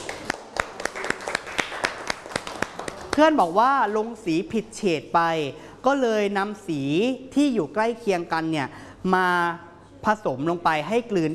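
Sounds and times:
small group of classmates clapping: 0:00.0 - 0:03.5
speech: 0:03.2 - 0:11.3.

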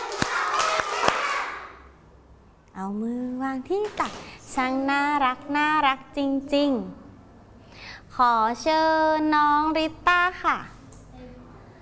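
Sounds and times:
children clapping during a classroom activity: 0:00.0 - 0:01.8
speech: 0:02.8 - 0:07.0, 0:08.1 - 0:10.8.

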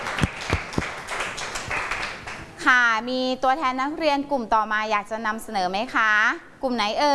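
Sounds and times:
classroom applause for student presenters: 0:00.0 - 0:02.6
speech: 0:02.7 - 0:07.1.

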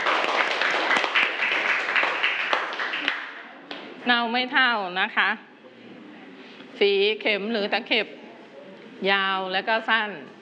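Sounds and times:
classroom applause: 0:00.0 - 0:03.6
speech: 0:04.0 - 0:05.5, 0:06.8 - 0:08.2, 0:09.0 - 0:10.4.

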